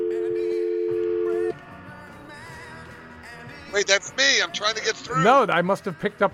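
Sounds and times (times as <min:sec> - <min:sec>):
telephone dial tone: 0:00.0 - 0:01.6
speech: 0:03.8 - 0:06.3.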